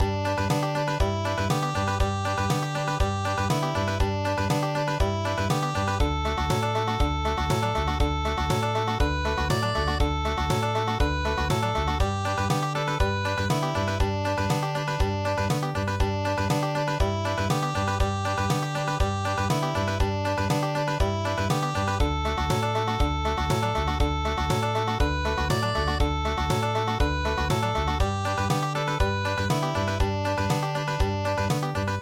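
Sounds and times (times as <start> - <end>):
country midi music: 0.0 - 32.0.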